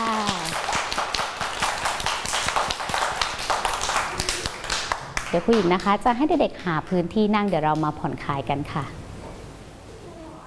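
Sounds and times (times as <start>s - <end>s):
children clapping: 0.0s - 6.0s
speech: 5.3s - 9.0s.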